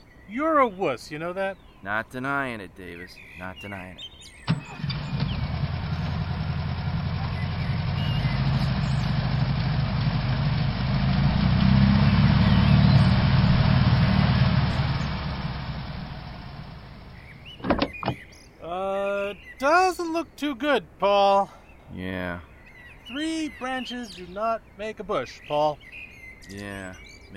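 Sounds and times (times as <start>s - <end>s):
speech: 0.3s - 4.8s, 20.0s - 22.5s, 23.1s - 27.3s
mechanical clunks: 4.5s - 5.4s, 17.6s - 18.3s
car engine idling while car is moved: 4.5s - 18.2s.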